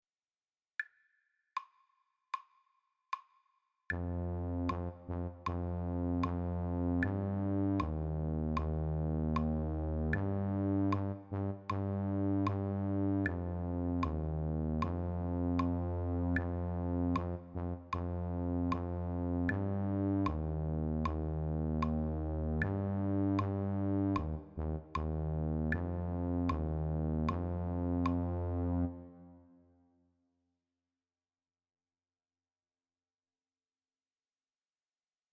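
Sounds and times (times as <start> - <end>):
low brass tuba: 3.9 - 29.8.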